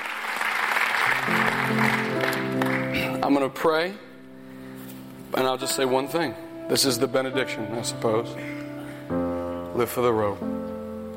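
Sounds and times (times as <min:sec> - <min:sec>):
audience clapping: 0:00.0 - 0:03.4
speech: 0:03.2 - 0:04.1, 0:05.3 - 0:09.2, 0:09.8 - 0:10.7.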